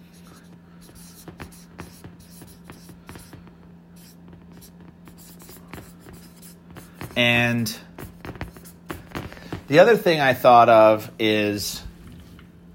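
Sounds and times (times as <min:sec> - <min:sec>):
pen strokes handwriting on paper: 0:00.0 - 0:09.2
faint steady hum: 0:00.0 - 0:12.7
speech: 0:07.2 - 0:07.8, 0:09.7 - 0:11.8.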